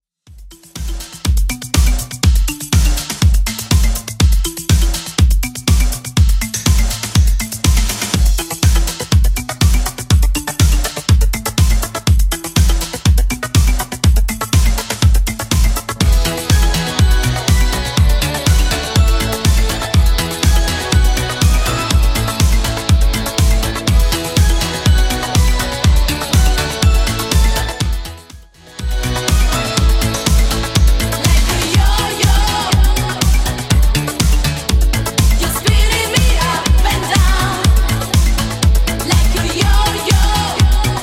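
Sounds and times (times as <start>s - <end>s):
clean 80s drum beat at 122 bpm: 0.3s - 41.0s.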